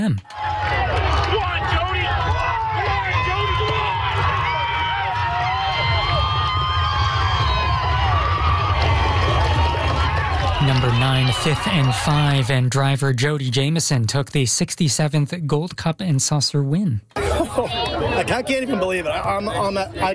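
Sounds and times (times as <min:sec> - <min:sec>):
speech: 0:00.0 - 0:03.2, 0:10.6 - 0:20.1
large crowd cheering and shouting at a horse race: 0:00.0 - 0:13.0, 0:17.2 - 0:20.0.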